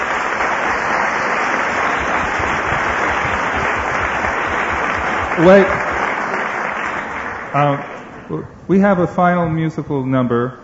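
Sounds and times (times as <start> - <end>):
audience applause: 0.0 - 8.2
speech: 5.4 - 5.8, 7.6 - 10.6.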